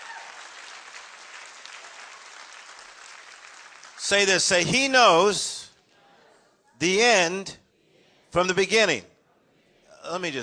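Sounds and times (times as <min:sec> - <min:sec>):
audience clapping: 0:00.0 - 0:04.7
speech: 0:04.0 - 0:05.6, 0:06.8 - 0:07.6, 0:08.4 - 0:09.1, 0:10.0 - 0:10.4.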